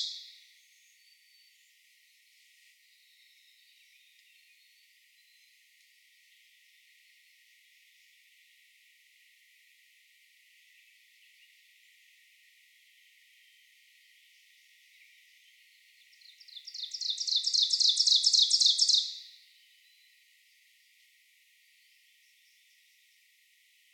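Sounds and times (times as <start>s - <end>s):
Ovenbird song of fast repeated phrases: 0.0s - 8.4s, 13.2s - 21.0s, 21.6s - 23.9s.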